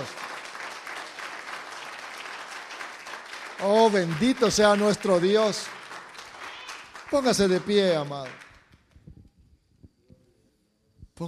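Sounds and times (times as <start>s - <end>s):
audience applause: 0.0s - 8.8s
speech: 3.6s - 5.8s, 7.1s - 8.5s.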